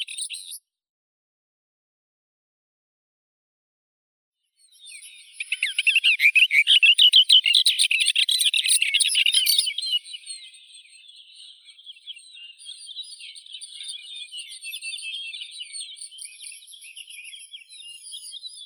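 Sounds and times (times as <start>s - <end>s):
Hippolais caligata booted warbler singing: 0.0s - 0.6s, 4.6s - 18.6s.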